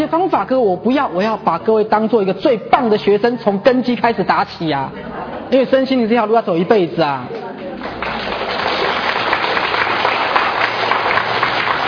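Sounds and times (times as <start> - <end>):
speech: 0.0 - 7.4
crowd applauding: 7.6 - 11.8.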